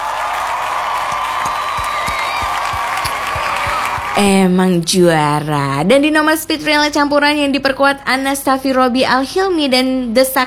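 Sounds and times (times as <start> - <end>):
crowd applauding: 0.0 - 4.3
speech: 4.2 - 10.4.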